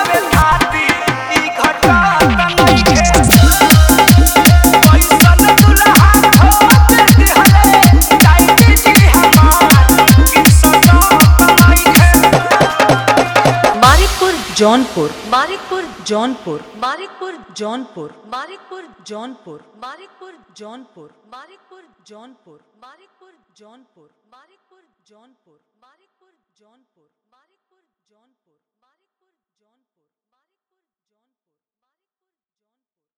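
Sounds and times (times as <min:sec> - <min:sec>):
Bhojpuri hard dholak bass dance mix: 0:00.0 - 0:16.7.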